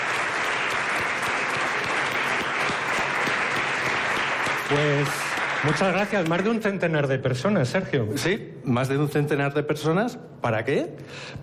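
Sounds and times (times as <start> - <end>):
audience applause: 0.0 - 6.6
speech: 4.7 - 11.4.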